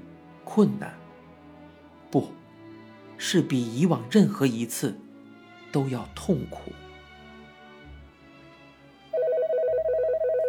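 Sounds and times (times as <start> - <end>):
speech: 0.5 - 1.0, 2.1 - 2.4, 3.2 - 5.0, 5.7 - 6.8
telephone ringing with electronic warble: 9.1 - 10.4.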